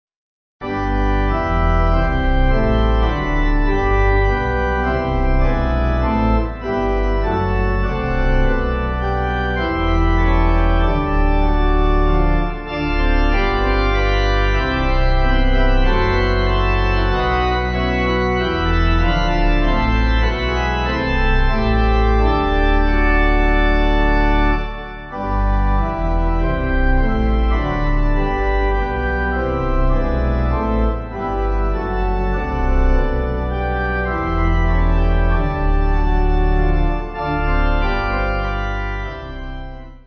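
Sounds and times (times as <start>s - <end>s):
pipe organ: 0.6s - 40.0s.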